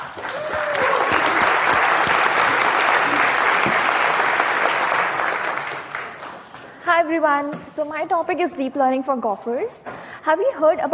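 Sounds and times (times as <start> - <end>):
audience applause: 0.0 - 6.6
speech: 7.1 - 10.9.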